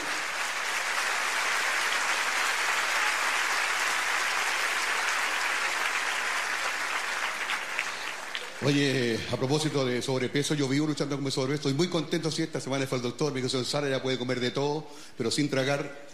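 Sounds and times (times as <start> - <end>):
audience applause: 0.0 - 9.2
speech: 8.6 - 16.1.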